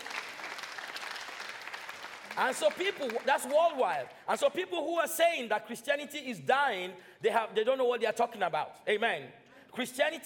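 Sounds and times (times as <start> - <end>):
audience applause: 0.0 - 4.0
speech: 2.4 - 10.2.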